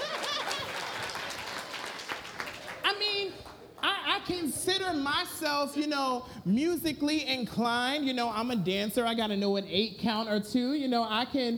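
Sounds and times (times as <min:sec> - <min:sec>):
audience clapping: 0:00.0 - 0:04.0
speech: 0:04.3 - 0:11.5.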